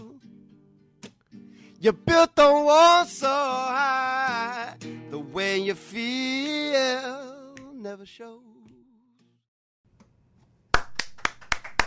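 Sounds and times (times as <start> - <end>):
speech: 1.8 - 7.2, 7.8 - 8.5
studio audience of two people clapping at a music show: 10.7 - 11.8.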